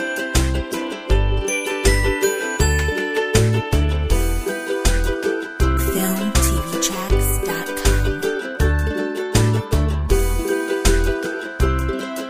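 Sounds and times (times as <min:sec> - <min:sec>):
optimistic ukulele playing: 0:00.0 - 0:12.2.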